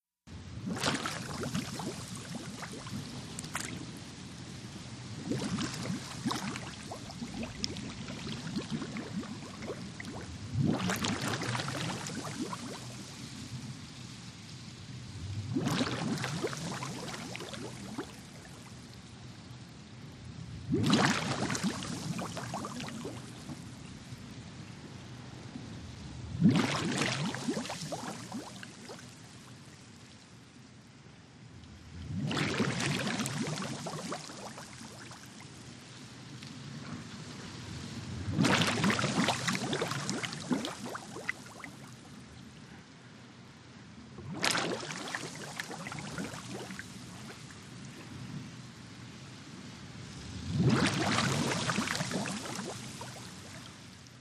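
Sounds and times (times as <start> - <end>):
scuba regulator bubbles: 0.6 - 4.1, 5.1 - 13.1, 15.2 - 18.6, 20.7 - 23.7, 26.4 - 29.1, 32.0 - 35.4, 38.3 - 42.0, 44.2 - 47.4, 50.5 - 53.6.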